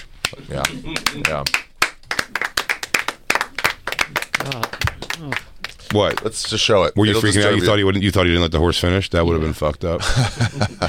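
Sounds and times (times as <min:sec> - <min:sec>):
hands clapping: 0:00.0 - 0:06.8
speech: 0:00.5 - 0:01.6, 0:04.1 - 0:10.8
laughter: 0:10.0 - 0:10.8.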